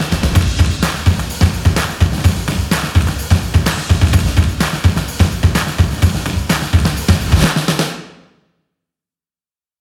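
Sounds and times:
hands clapping: 0.0 - 7.7
drums: 0.0 - 8.2
stomps: 0.1 - 7.6.

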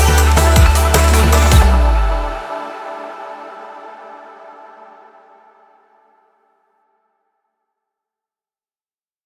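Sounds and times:
energetic future bass technology music: 0.0 - 2.8.

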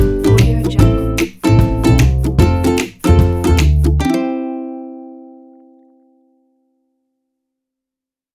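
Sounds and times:
happy ukulele intro logo jingle: 0.0 - 5.5.

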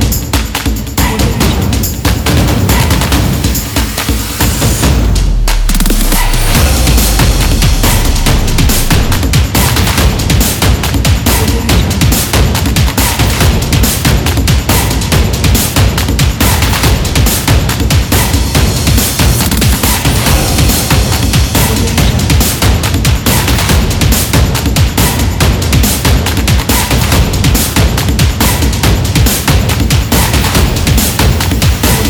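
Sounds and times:
epic taiko drums: 0.0 - 32.0.

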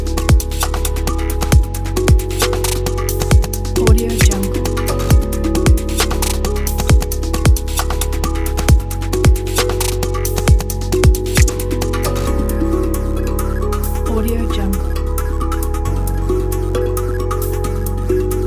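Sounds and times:
ambient background music: 0.0 - 18.4.

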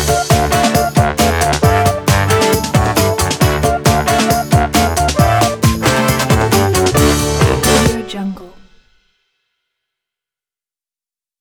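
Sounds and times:
funk music: 0.0 - 8.8.

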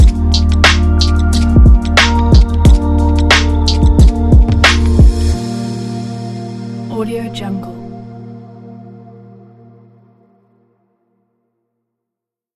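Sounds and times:
warm hip hop music: 0.0 - 9.7.

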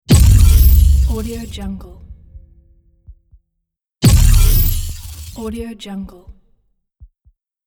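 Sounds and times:
glitch hit: 0.1 - 2.7, 4.0 - 5.3.

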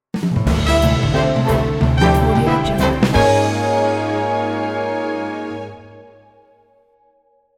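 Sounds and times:
jazzy sitcom stinger transition: 0.4 - 6.0.

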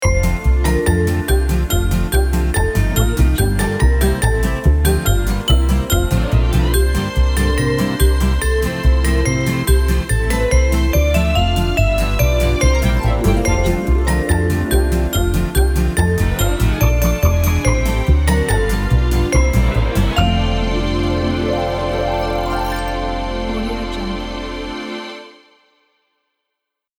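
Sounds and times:
retro Christmas logo jingle: 0.0 - 25.4.

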